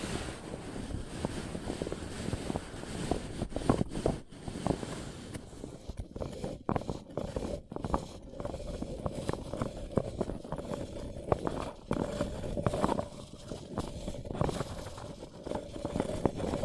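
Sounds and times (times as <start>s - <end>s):
faint steady hum: 0.0s - 16.6s
paper cup handled with rustling and scraping: 0.0s - 16.6s
sharp taps and crinkles: 3.7s - 16.6s.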